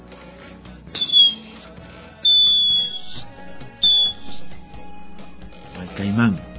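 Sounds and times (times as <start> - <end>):
clay whistle imitating a harpy eagle's call: 0.9 - 1.6, 2.2 - 4.6
speech: 6.2 - 6.4.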